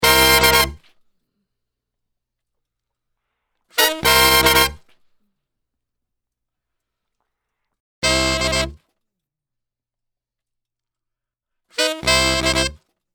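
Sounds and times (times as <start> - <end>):
saxophone section: 0.0 - 0.8, 3.8 - 4.8, 8.0 - 8.8, 11.8 - 12.8.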